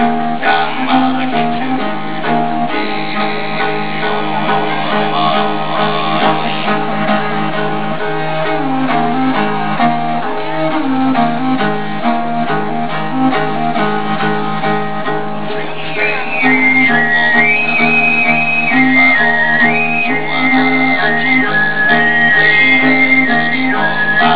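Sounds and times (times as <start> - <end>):
Chinese music in Salzburg: 0.0 - 24.3.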